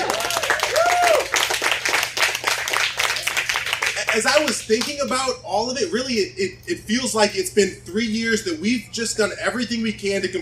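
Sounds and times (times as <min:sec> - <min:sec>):
church congregation clapping during a first-anniversary celebration: 0:00.0 - 0:05.0
speech: 0:04.2 - 0:10.4.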